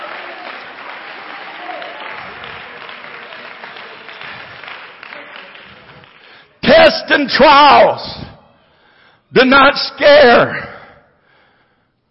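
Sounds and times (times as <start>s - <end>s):
audience clapping: 0.0s - 6.6s
speech: 6.9s - 8.2s, 9.3s - 10.7s.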